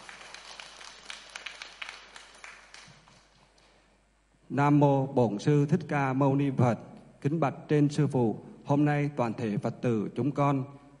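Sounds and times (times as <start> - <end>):
audience applause welcoming a monk: 0.0 - 3.7
speech: 4.5 - 10.9.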